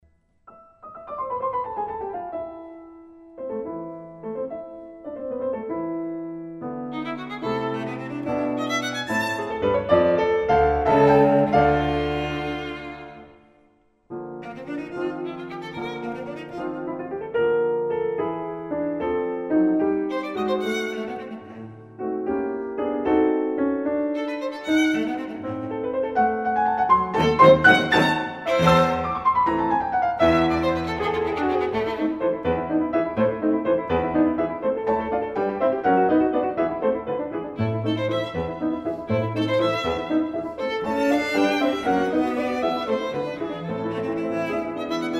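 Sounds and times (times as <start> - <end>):
piano trio: 0.5 - 13.5, 14.1 - 45.1.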